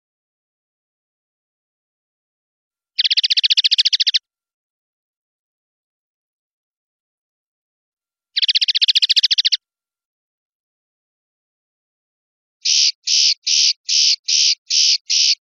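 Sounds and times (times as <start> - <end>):
European goldfinch singing: 3.0 - 4.2, 8.4 - 9.6, 12.6 - 15.4.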